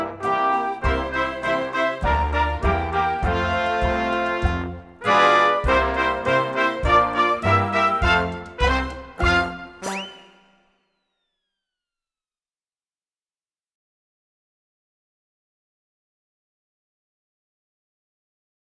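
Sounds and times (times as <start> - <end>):
fast accordion tune: 0.2 - 10.4.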